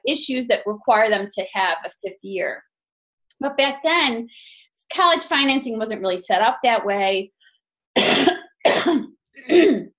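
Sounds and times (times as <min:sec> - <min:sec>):
speech: 0:00.0 - 0:02.7, 0:03.4 - 0:07.4, 0:08.0 - 0:09.9
person coughing during an asthma attack: 0:08.0 - 0:09.9.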